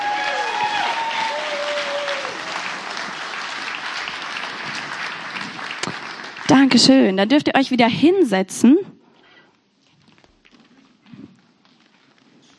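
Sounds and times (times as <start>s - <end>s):
applause for the children: 0.0s - 7.2s
speech: 6.5s - 8.9s.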